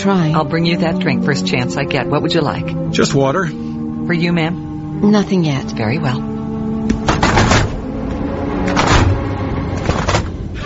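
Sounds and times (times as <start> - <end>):
speech: 0.0 - 6.3
airplane cabin door being closed: 6.8 - 10.4.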